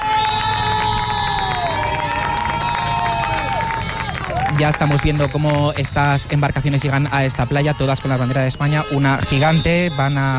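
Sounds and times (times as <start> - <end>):
whistles and shouts: 0.0 - 1.6, 8.6 - 10.3
large crowd applauding and cheering outdoors: 0.0 - 10.3
speech: 4.6 - 10.3.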